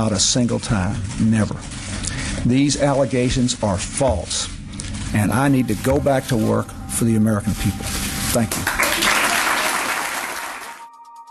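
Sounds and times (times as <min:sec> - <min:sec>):
speech: 0:00.0 - 0:08.8
cheers and applause: 0:08.6 - 0:10.8.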